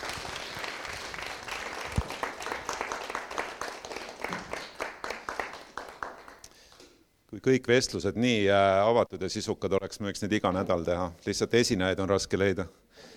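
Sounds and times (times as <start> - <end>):
audience applause: 0.0 - 6.5
speech: 7.4 - 12.8.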